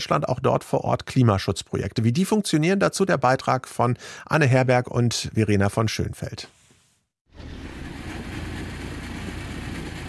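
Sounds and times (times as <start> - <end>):
speech: 0.0 - 6.6
cargo motor tricycle engine running: 7.4 - 10.0.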